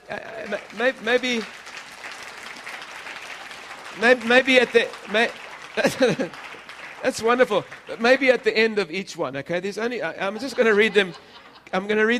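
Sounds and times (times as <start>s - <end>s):
laughter: 0.0s - 1.5s, 4.0s - 8.3s, 10.1s - 12.1s
audience applauding: 0.0s - 9.0s
speech: 0.1s - 1.6s, 4.0s - 6.4s, 7.0s - 12.1s.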